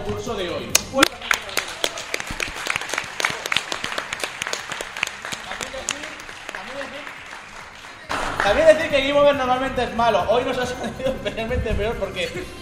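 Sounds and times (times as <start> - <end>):
speech: 0.1 - 1.4, 8.4 - 12.5
audience applause: 1.0 - 8.8.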